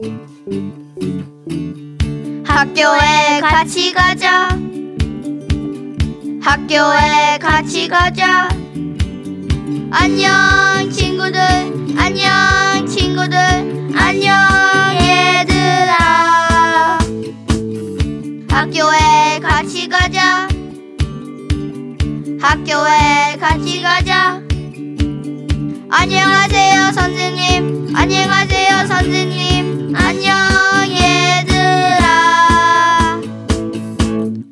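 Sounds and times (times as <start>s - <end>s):
Korean song: 0.0s - 34.4s.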